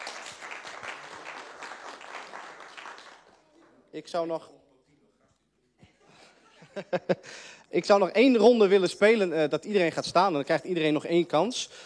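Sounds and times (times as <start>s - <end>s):
audience applause: 0.0s - 3.9s
speech: 3.9s - 4.6s, 6.8s - 11.8s
laughter: 5.8s - 7.4s.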